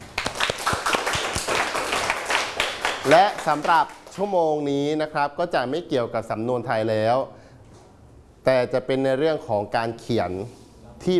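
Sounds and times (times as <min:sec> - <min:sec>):
students clapping for themselves: 0:00.0 - 0:04.3
speech: 0:03.0 - 0:07.4, 0:08.4 - 0:11.1.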